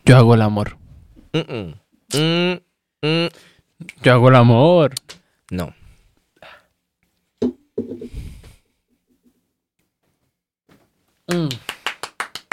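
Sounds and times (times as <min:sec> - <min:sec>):
speech: 0:00.1 - 0:05.8, 0:11.3 - 0:11.7
person laughing: 0:01.4 - 0:02.3
hand clapping: 0:11.3 - 0:12.5.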